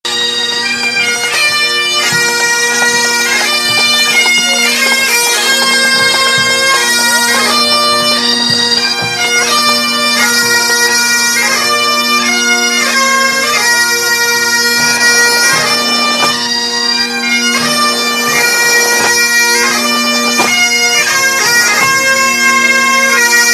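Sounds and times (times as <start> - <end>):
pipe band: 0.1 - 23.5.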